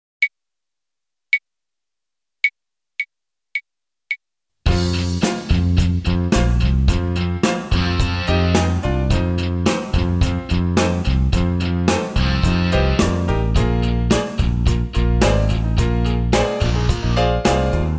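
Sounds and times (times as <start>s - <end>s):
staccato blues music: 4.7s - 17.9s.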